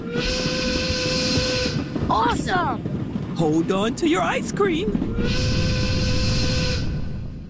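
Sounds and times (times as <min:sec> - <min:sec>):
steam train whistle: 0:00.0 - 0:01.9, 0:05.2 - 0:07.1
speech: 0:02.1 - 0:05.7.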